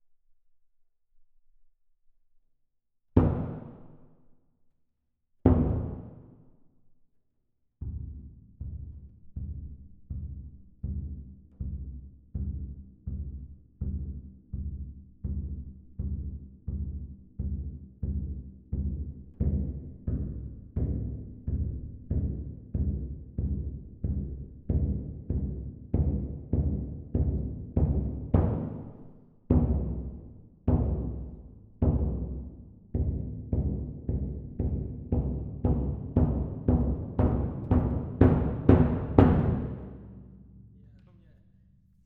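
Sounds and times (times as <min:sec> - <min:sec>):
percussion: 0:03.2 - 0:04.1, 0:05.4 - 0:06.4, 0:07.8 - 0:42.0.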